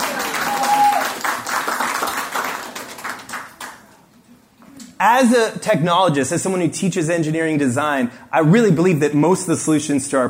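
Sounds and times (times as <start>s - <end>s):
audience applause: 0.0s - 3.8s
speech: 5.0s - 10.2s.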